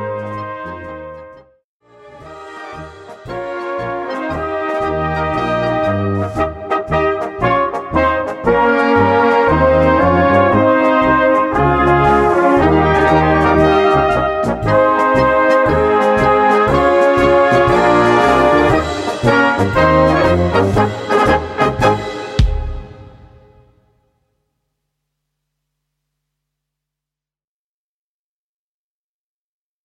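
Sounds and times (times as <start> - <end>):
polka music: 0.0 - 23.8.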